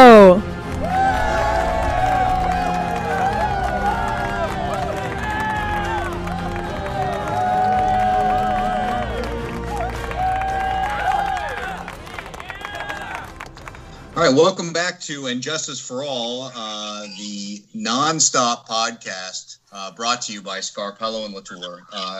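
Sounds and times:
crowd cheering: 0.0 - 14.3
audience applause for a podcast host: 0.4 - 14.3
speech: 14.3 - 16.8, 17.9 - 19.4, 20.0 - 22.1.

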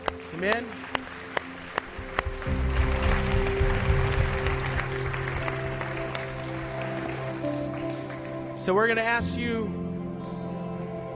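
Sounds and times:
audience applause: 0.0 - 8.6
sustained held musical tones: 0.0 - 11.1
speech: 0.3 - 1.0, 8.7 - 9.8.

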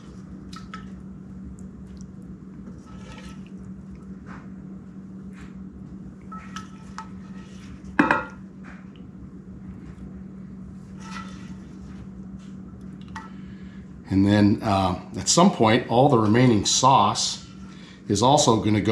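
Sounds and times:
low steady hum: 0.0 - 18.8
utensils scraping and clattering against cookware adding fried shrimp on rice: 2.8 - 3.5, 6.3 - 8.3, 10.9 - 11.7
speech: 14.1 - 17.4, 18.1 - 18.8.

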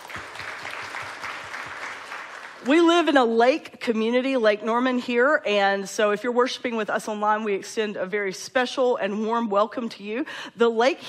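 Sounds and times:
crowd clapping: 0.0 - 2.8
speech: 2.6 - 11.0.

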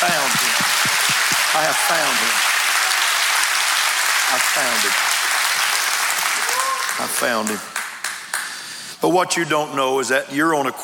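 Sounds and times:
crowd clapping: 0.0 - 8.7
speech: 1.6 - 2.5, 4.6 - 5.1, 7.0 - 7.8, 9.0 - 10.8.

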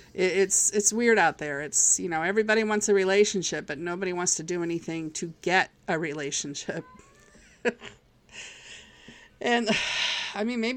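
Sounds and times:
speech: 0.2 - 7.0, 7.6 - 8.5, 9.4 - 10.7
cat meowing: 6.8 - 7.5.

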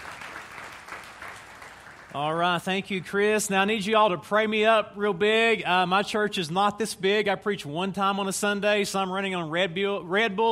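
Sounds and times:
audience applause: 0.0 - 2.2
speech: 2.1 - 10.5.

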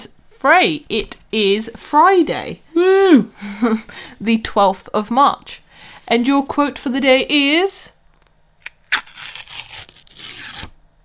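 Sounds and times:
speech: 0.0 - 8.0
paper ripping: 8.6 - 10.7.

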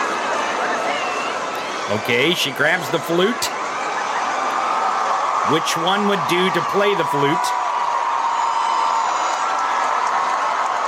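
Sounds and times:
large excited concert crowd cheering: 0.0 - 10.8
speech: 1.9 - 3.6, 5.5 - 7.6
applause: 4.1 - 10.8.

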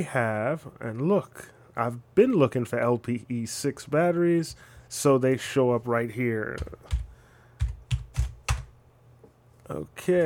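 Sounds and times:
speech: 0.0 - 7.0, 9.7 - 10.2
computer keyboard keystrokes typing a search: 6.5 - 8.7.

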